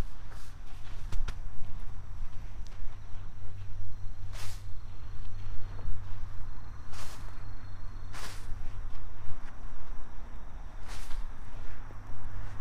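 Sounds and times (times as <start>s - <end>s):
soil scraped over garlic planting holes: 0.0s - 1.8s, 3.2s - 9.6s, 10.7s - 12.5s
faint insect calls: 0.0s - 12.5s
low hum: 0.0s - 12.5s.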